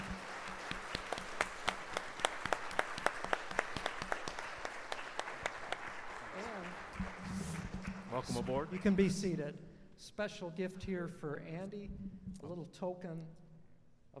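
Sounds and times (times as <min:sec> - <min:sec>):
audience applause after a prayer: 0:00.0 - 0:09.2
speech: 0:08.2 - 0:13.4.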